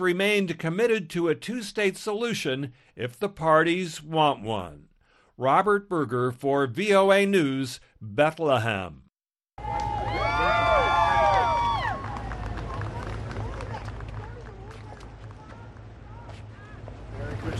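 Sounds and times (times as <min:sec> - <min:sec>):
speech: 0:00.0 - 0:09.0
crowd cheering: 0:09.6 - 0:17.0.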